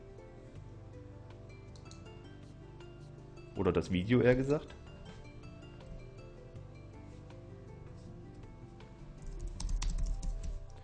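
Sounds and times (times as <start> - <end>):
speech: 3.6 - 4.8
typing on a computer keyboard during a live video stream: 9.2 - 10.8.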